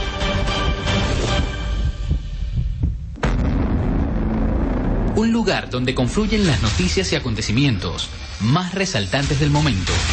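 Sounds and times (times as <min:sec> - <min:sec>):
low throbbing heartbeat sound effect: 0:00.7 - 0:05.1
speech: 0:05.2 - 0:10.1.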